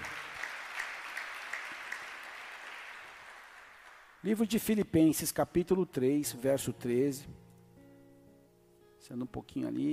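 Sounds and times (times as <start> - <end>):
audience applauding: 0.0 - 4.2
speech: 4.2 - 7.4, 9.0 - 9.9.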